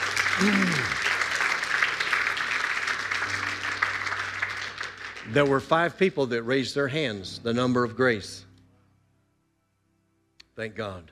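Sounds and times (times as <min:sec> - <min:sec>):
audience applause: 0:00.0 - 0:06.0
speech: 0:00.4 - 0:01.1, 0:05.3 - 0:08.5, 0:10.6 - 0:11.1.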